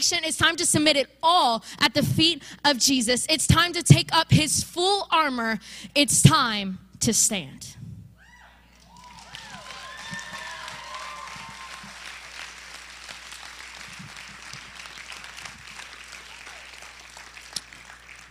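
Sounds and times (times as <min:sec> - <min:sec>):
speech: 0:00.0 - 0:07.8
audience applause: 0:08.8 - 0:18.2.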